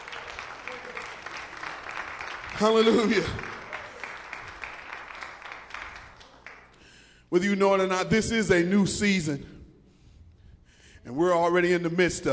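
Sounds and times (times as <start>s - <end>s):
audience hand clapping in praise: 0.0s - 6.8s
speech: 2.6s - 3.5s, 7.3s - 9.5s, 11.1s - 12.3s.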